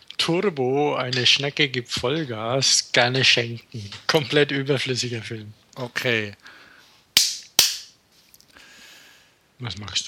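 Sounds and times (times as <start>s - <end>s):
speech: 0.2s - 6.6s, 9.6s - 10.0s
single hand clap for audio sync: 7.2s - 8.0s.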